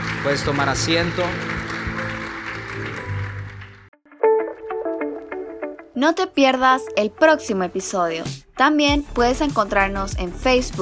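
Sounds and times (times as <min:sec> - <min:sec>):
audience applauding: 0:00.0 - 0:04.0
speech: 0:00.2 - 0:01.6, 0:06.0 - 0:10.8.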